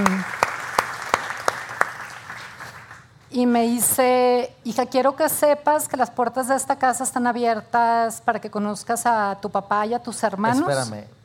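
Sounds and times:
audience applause: 0:00.0 - 0:03.0
speech: 0:03.4 - 0:11.2.

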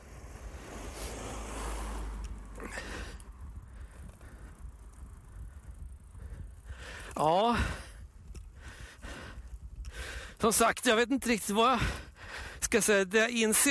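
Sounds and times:
car passing a cyclist on the road: 0:00.0 - 0:06.2
speech: 0:07.2 - 0:07.8, 0:10.4 - 0:12.0, 0:12.7 - 0:13.6.

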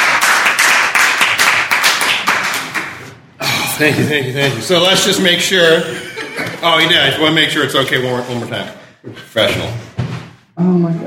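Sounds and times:
round of applause: 0:00.0 - 0:03.1
laughter: 0:03.4 - 0:07.4
speech: 0:03.8 - 0:09.9, 0:10.6 - 0:11.0.

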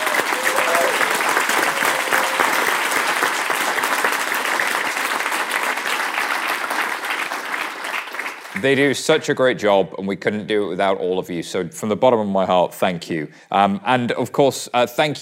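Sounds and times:
audience applause: 0:00.0 - 0:08.8
speech: 0:08.6 - 0:15.2.

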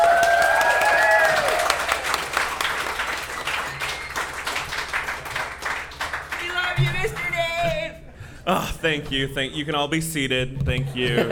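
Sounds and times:
packed audience applauding and cheering a speaker at a live history storytelling event: 0:00.0 - 0:07.9
speech: 0:08.8 - 0:11.2.

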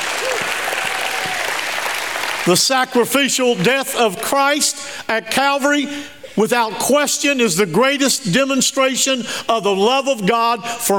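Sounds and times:
audience applause: 0:00.0 - 0:02.6
audience shouting praise: 0:00.1 - 0:01.6
speech: 0:02.4 - 0:10.9.

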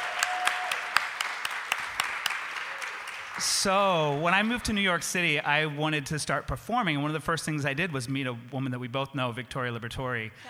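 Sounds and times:
live audience applause: 0:00.0 - 0:05.5
speech: 0:03.4 - 0:10.4.

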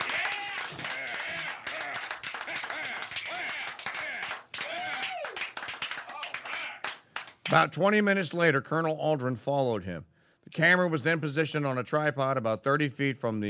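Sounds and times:
cheering: 0:00.0 - 0:06.9
crowd applause: 0:00.0 - 0:07.4
overlapping voices: 0:00.0 - 0:07.6
speech: 0:07.5 - 0:13.4.

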